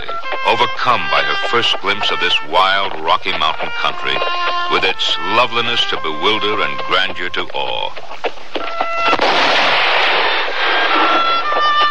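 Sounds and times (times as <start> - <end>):
speech: 0.4 - 8.8
gunshot fired at a rider on a Rocky Mountain trail: 9.0 - 11.6
loud dense rushing noise: 9.1 - 11.8.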